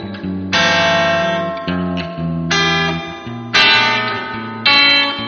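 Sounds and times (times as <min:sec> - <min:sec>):
spring reverb: 0:00.1 - 0:05.2.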